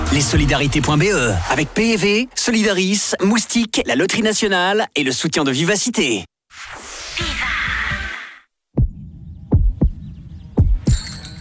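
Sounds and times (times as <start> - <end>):
speech: 0.2 - 6.8
heartbeat sound effect: 8.8 - 11.0.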